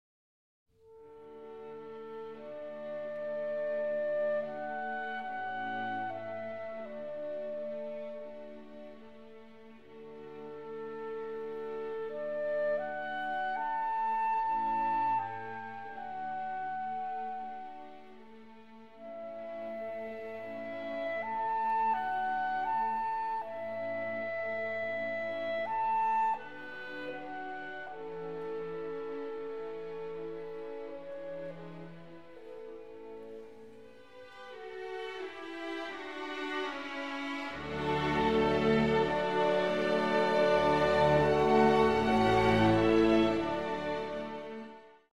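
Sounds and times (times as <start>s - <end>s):
clarinet concerto slow movement: 0.8s - 45.1s.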